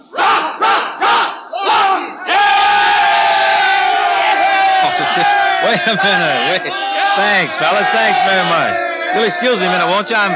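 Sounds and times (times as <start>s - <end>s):
crowd of men cheering: 0.2s - 10.3s
laughter: 1.9s - 10.3s
speech: 5.2s - 10.3s.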